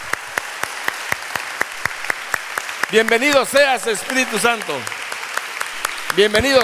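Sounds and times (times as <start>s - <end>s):
church congregation clapping in unison: 0.0s - 6.6s
speech: 2.9s - 5.0s, 6.1s - 6.6s.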